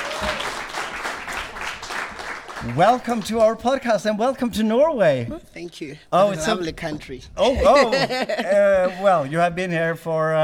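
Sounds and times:
audience applause for musicians: 0.0 - 3.8
speech: 2.6 - 10.4
laughter: 7.4 - 9.4.

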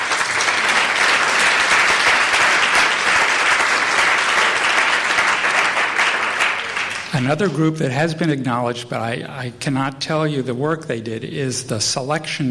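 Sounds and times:
audience applause: 0.0 - 7.3
speech: 7.2 - 12.4.

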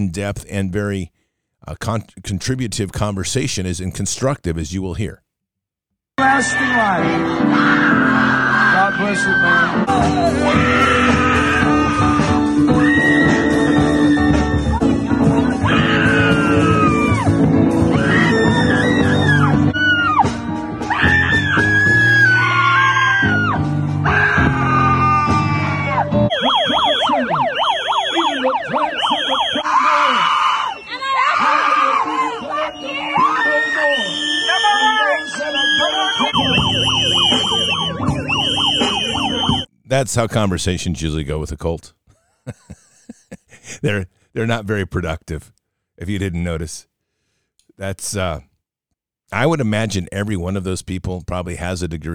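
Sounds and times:
speech: 0.0 - 5.2, 6.2 - 11.8, 39.9 - 42.7, 43.7 - 46.9, 47.8 - 48.5, 49.3 - 52.1
crowd yelling: 6.2 - 39.7
police whistles: 26.3 - 31.2, 32.3 - 39.7
laughter: 42.2 - 44.1.

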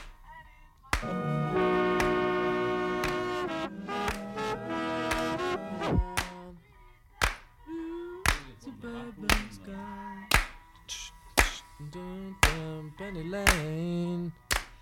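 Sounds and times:
hand claps overdubbed on a studio take: 0.9 - 1.3, 1.9 - 5.4, 6.0 - 6.4, 7.2 - 7.5, 8.2 - 8.5, 9.3 - 9.6, 10.3 - 10.6, 11.4 - 11.6, 12.4 - 12.7, 13.5 - 13.8, 14.5 - 14.8
wavering sung or played tones: 1.0 - 6.5.

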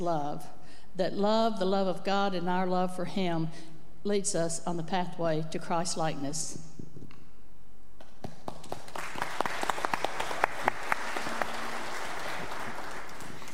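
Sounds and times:
speech: 0.0 - 6.7
audience applause: 8.5 - 13.5.

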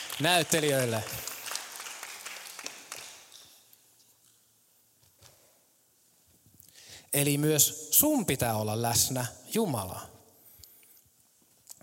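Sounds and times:
audience applause: 0.0 - 3.5
speech: 0.2 - 1.3, 7.1 - 10.2.

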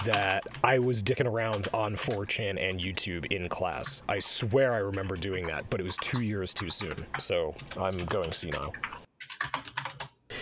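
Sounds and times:
typing on a computer keyboard: 0.0 - 2.3, 4.9 - 10.2
speech: 0.0 - 9.4.

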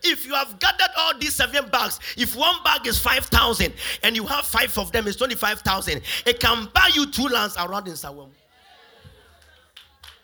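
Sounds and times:
speech: 0.3 - 8.4
scattered hand claps from an audience: 9.3 - 10.2.

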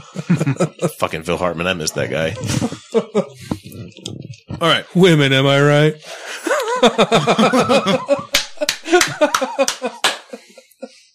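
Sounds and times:
laughter: 0.0 - 4.3, 6.2 - 11.1
speech: 0.1 - 3.6, 4.6 - 6.2, 6.8 - 8.3
hands clapping: 7.9 - 10.4.

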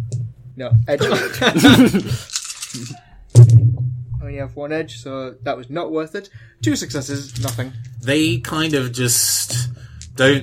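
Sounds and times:
speech: 0.6 - 10.4
laughter: 1.0 - 2.3
two dice being rolled: 1.9 - 3.0, 7.2 - 7.6.

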